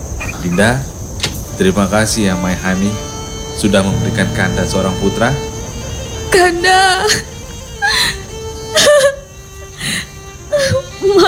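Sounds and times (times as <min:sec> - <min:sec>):
speech: 0:00.4 - 0:00.9, 0:01.6 - 0:05.5, 0:06.3 - 0:07.3
woman sobbing in a dramatic scene: 0:07.8 - 0:11.2.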